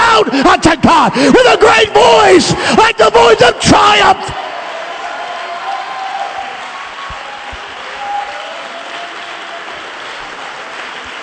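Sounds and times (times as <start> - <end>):
speech: 0.2 - 4.4
audience clapping hands: 4.5 - 11.2.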